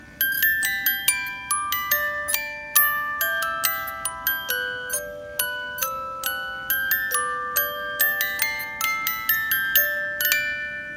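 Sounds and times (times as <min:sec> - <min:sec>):
music box: 0:00.0 - 0:10.9.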